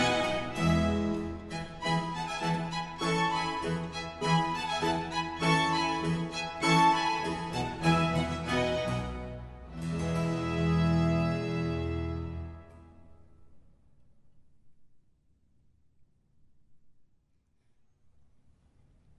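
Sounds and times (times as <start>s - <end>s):
violin playing a concerto: 0.0s - 13.0s.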